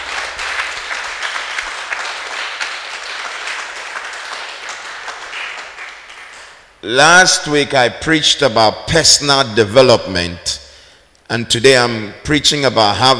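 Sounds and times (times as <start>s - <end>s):
audience clapping: 0.0s - 6.8s
speech: 6.8s - 10.6s, 11.3s - 13.1s.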